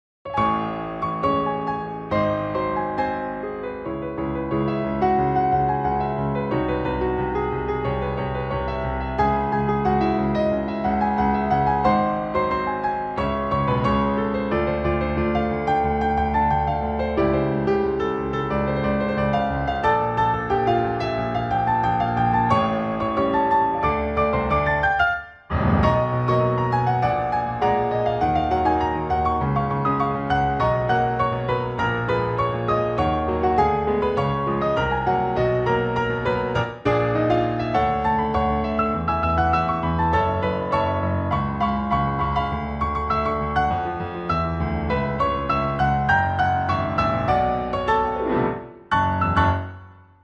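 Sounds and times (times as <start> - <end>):
piano: 0.2 - 50.2.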